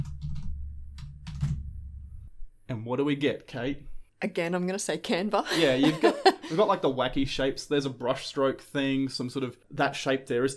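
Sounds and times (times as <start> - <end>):
computer keyboard typing into a Canva search bar: 0.0 - 1.6
speech: 2.7 - 10.5
laughter: 5.5 - 6.8.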